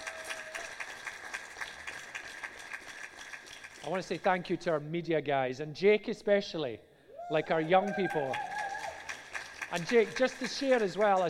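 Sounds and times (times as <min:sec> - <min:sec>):
audience applause: 0:00.0 - 0:04.0, 0:07.5 - 0:11.2
speech: 0:03.8 - 0:08.5, 0:09.7 - 0:11.2.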